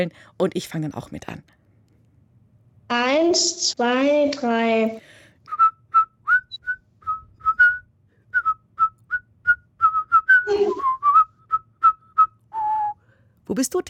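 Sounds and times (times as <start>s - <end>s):
speech: 0.0s - 1.6s, 2.9s - 5.2s, 13.5s - 13.8s
person whistling a children's song melody: 5.5s - 13.0s.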